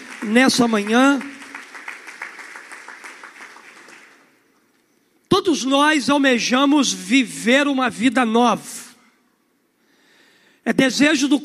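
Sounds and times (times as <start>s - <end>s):
audience clapping: 0.0s - 4.6s
speech: 0.2s - 1.3s, 5.4s - 8.8s, 10.7s - 11.4s.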